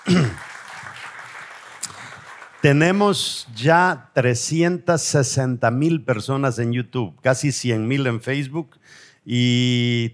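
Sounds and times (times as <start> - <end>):
audience applauding: 0.0 - 3.4
speech: 2.6 - 10.1.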